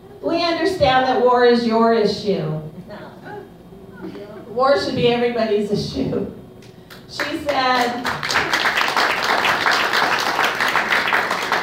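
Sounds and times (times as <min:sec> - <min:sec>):
speech: 0:00.2 - 0:03.1, 0:04.6 - 0:06.4, 0:07.1 - 0:08.4
audience applause during a speech about war and women's rights: 0:08.0 - 0:11.6.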